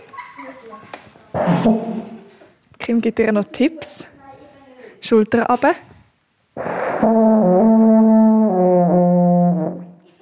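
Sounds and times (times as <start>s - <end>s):
speech: 0.6s - 2.1s, 2.9s - 4.1s, 5.0s - 5.9s, 6.6s - 7.9s
alphorn blown in long low brass note: 6.6s - 10.0s.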